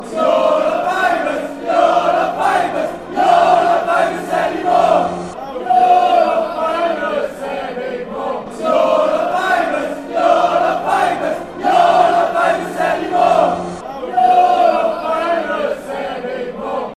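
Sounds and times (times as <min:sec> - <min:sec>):
football fans chanting: 0:00.0 - 0:16.9.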